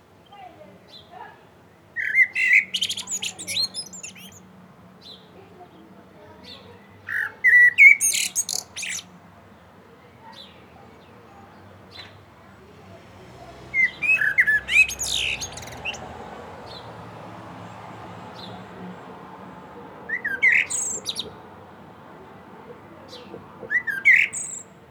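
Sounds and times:
common blackbird song: 0.2s - 12.2s, 13.6s - 24.8s.

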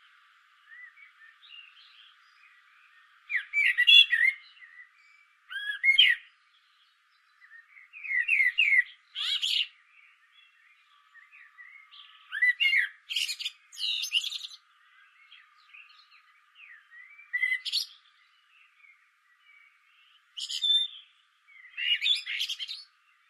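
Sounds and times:
common blackbird singing: 0.0s - 23.2s.

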